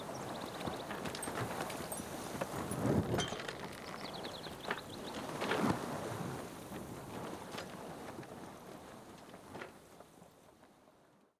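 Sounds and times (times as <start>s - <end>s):
sailboat on a lake: 0.0s - 11.3s.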